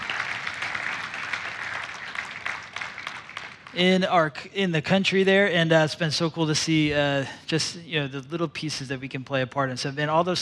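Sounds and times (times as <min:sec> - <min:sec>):
audience applause: 0:00.0 - 0:03.8
speech: 0:03.7 - 0:10.3.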